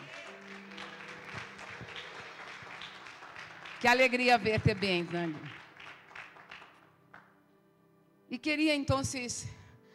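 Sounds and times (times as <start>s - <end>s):
crowd applauding: 0.0s - 7.3s
speech: 3.8s - 5.6s, 8.4s - 9.6s.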